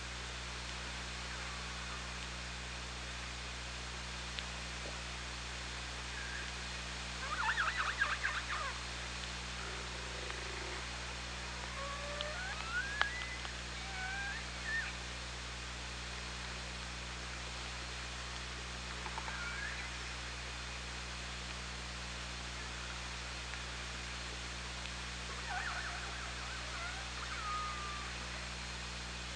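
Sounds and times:
background hiss: 0.0s - 29.3s
hum: 0.0s - 29.3s
orca whistles and pulsed calls: 7.2s - 8.8s, 9.6s - 10.9s, 11.5s - 15.0s, 25.3s - 28.5s.

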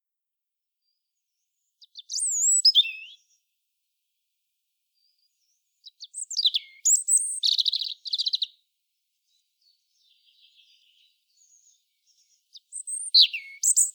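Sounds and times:
European robin Erithacus rubecula singing: 0.8s - 3.5s, 5.0s - 8.6s, 9.2s - 13.9s.

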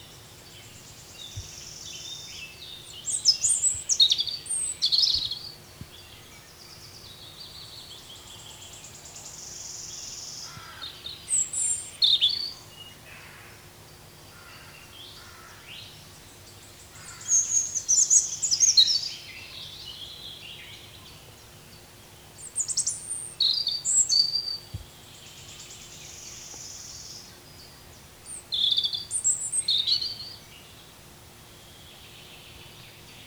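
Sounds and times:
European robin singing: 0.0s - 13.0s, 14.0s - 33.2s
faint hiss: 0.0s - 33.2s.

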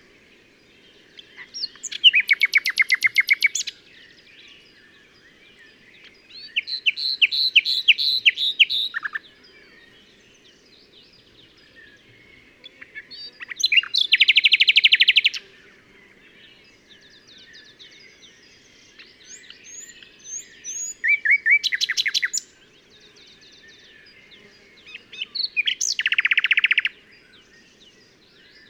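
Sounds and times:
common nightingale singing: 0.0s - 28.6s.

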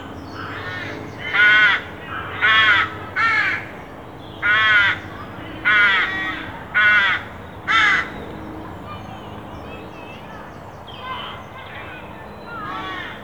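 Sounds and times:
carrion crow cawing: 0.4s - 3.7s, 4.4s - 8.2s, 12.5s - 13.2s.

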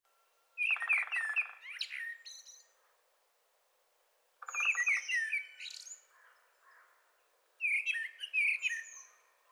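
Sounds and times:
Common blackbird song phrases: 0.6s - 2.8s, 4.4s - 9.5s.

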